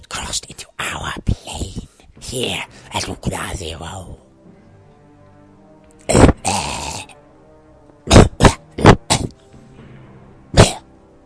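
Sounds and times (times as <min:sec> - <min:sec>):
speech: 0:02.3 - 0:04.3
cough: 0:08.1 - 0:09.4, 0:10.5 - 0:10.9.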